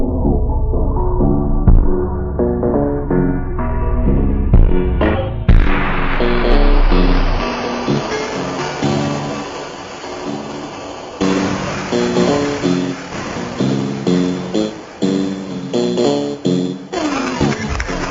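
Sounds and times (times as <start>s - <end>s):
ultra hyper mega slowed reverb phonk with bass: 0.0s - 18.1s.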